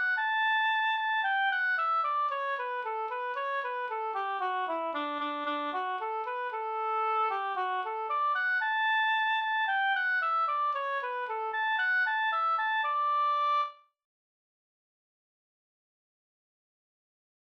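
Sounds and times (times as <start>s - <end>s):
polka music: 0.0s - 13.7s.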